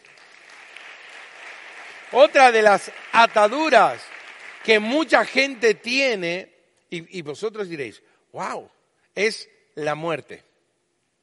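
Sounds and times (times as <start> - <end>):
audience applause: 0.0 - 5.9
speech: 2.1 - 10.5.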